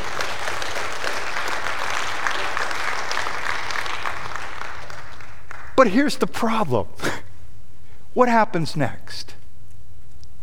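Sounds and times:
audience applause: 0.0 - 5.8
speech: 5.8 - 7.2, 8.2 - 9.3.

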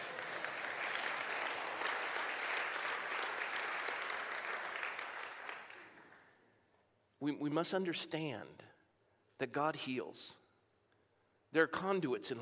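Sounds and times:
audience applause: 0.0 - 6.3
speech: 7.2 - 8.7, 9.4 - 10.4, 11.5 - 12.4.

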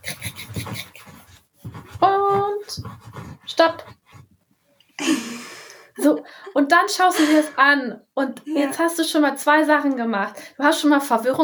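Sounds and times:
pen scribbling on paper: 0.0 - 4.4
speech: 3.6 - 3.8, 6.7 - 11.4.

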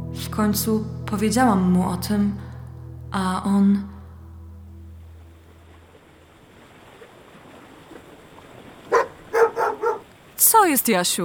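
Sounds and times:
speech: 0.2 - 2.5, 3.1 - 3.9, 10.6 - 11.2
seagull calling: 8.9 - 10.1.

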